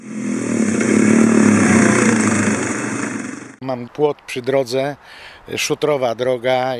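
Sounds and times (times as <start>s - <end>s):
motocross bike engine revving: 0.0s - 3.6s
speech: 3.7s - 6.7s.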